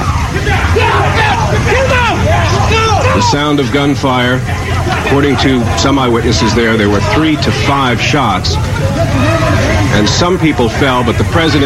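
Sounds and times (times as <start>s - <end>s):
crowd calling to the president outside the Washington Hilton Hotel: 0.0s - 11.6s
speech: 3.2s - 11.6s.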